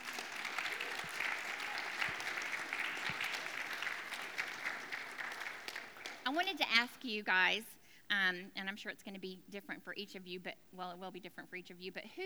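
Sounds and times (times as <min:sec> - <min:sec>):
audience applause: 0:00.0 - 0:06.4
speech: 0:06.3 - 0:12.2.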